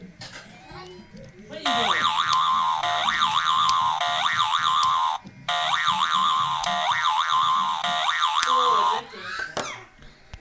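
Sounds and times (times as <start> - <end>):
boing: 1.7 - 9.0.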